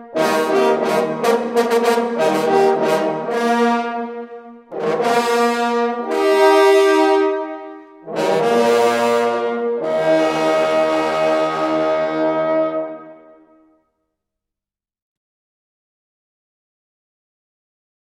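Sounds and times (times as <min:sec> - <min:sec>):
hunting horn players playing: 0:00.0 - 0:13.7.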